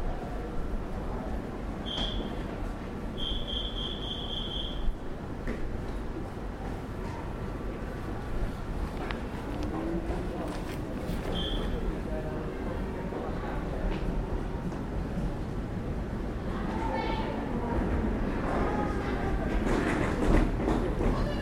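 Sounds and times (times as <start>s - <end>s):
train rolling at a station platform: 0.0s - 21.4s
train squeals and scrapes: 1.8s - 2.6s, 3.2s - 5.0s, 11.2s - 11.8s.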